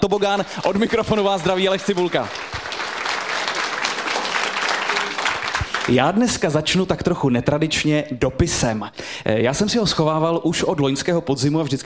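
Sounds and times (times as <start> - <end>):
speech: 0.0 - 2.4, 5.9 - 11.8
live theatre audience applauding: 0.2 - 6.5.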